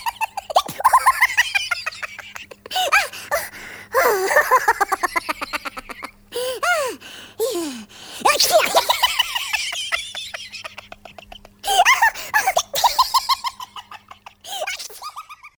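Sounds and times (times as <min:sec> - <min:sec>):
child laughing cartoonishly: 0:00.0 - 0:15.5.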